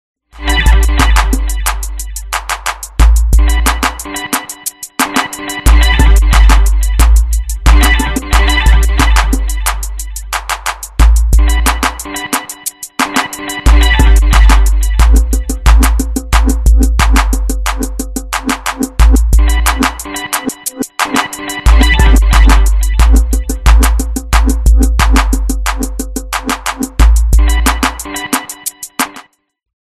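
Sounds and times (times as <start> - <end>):
instrumental music: 0.4 - 29.4.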